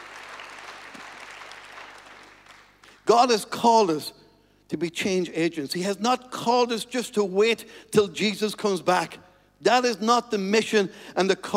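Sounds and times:
audience applause: 0.0s - 3.0s
speech: 3.1s - 11.5s.

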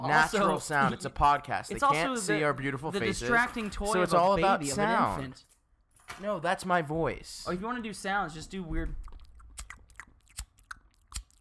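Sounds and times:
speech: 0.0s - 5.5s, 6.1s - 9.7s
chewing while eating sushi: 8.9s - 11.3s.

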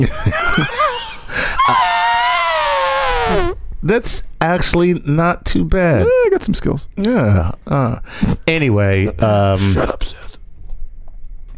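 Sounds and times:
speech: 0.0s - 1.8s, 3.8s - 10.3s
laughter: 0.0s - 3.6s
voice imitating an elephant: 1.6s - 3.6s.

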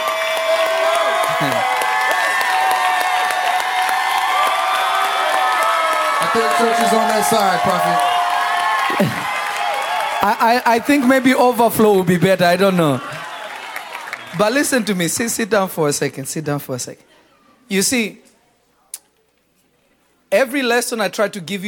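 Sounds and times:
audience clapping: 0.0s - 15.2s
speech: 6.3s - 8.1s, 8.9s - 9.4s, 10.2s - 13.1s, 14.3s - 17.1s, 17.7s - 18.2s, 20.3s - 21.6s.

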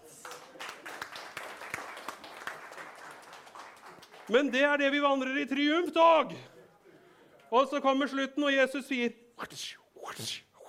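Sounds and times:
audience applause: 0.0s - 4.4s
speech: 4.3s - 6.5s, 7.5s - 10.4s.

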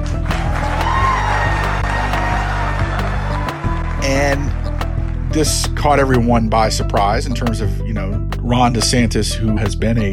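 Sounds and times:
scattered claps and whoops: 0.0s - 5.2s
crowd cheering: 0.1s - 5.2s
speech: 5.4s - 10.1s.

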